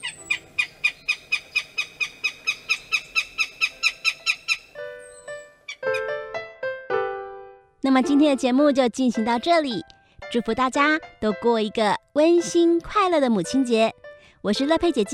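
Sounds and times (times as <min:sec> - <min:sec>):
crested goshawk call: 0:00.0 - 0:06.1
speech: 0:07.9 - 0:15.1.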